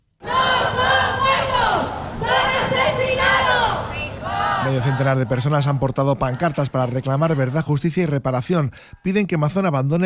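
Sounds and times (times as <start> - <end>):
protest crowd chanting: 0.2 - 7.8
speech: 4.7 - 10.0.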